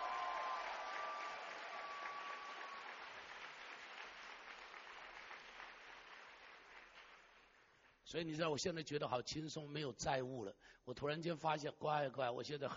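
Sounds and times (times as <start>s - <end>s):
audience cheering: 0.0s - 3.7s
audience applauding: 0.0s - 8.0s
speech: 8.1s - 12.7s.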